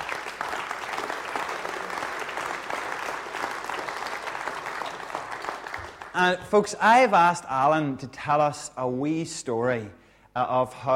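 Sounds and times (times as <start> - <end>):
crowd applause: 0.0 - 6.2
speech: 6.2 - 10.9.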